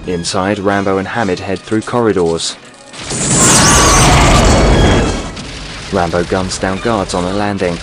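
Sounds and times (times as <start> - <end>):
speech: 0.0 - 3.8, 5.9 - 7.8
explosions erupting around a guarded camp during an action-film assault: 3.0 - 7.3.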